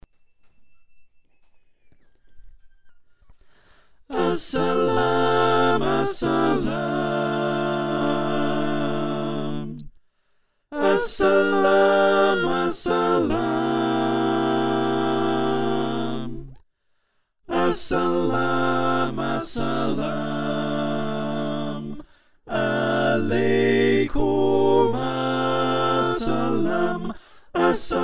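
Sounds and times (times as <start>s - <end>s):
SATB choir singing: 4.1s - 9.9s, 10.7s - 16.6s, 17.5s - 28.0s.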